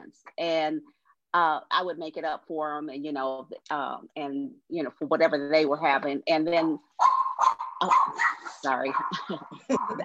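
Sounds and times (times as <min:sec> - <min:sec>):
speech: 0:00.1 - 0:10.0
dog yipping and barking during a live talk show: 0:07.0 - 0:09.2.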